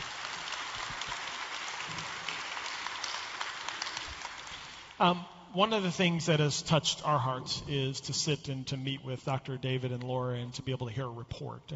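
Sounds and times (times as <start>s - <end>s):
audience applause: 0.0s - 5.0s
speech: 5.0s - 11.7s.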